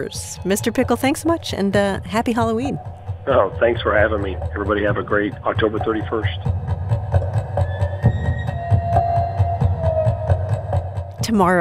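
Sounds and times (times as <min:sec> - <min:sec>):
speech: 0:00.0 - 0:06.6, 0:11.3 - 0:11.6
scary music on the Apprehension Engine instrument: 0:00.0 - 0:11.6.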